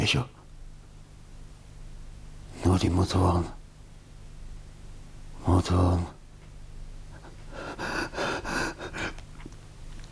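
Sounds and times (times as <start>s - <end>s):
speech: 0.0s - 0.4s, 2.6s - 3.6s, 5.4s - 6.2s
heavy ragged gasping breaths: 7.2s - 9.2s.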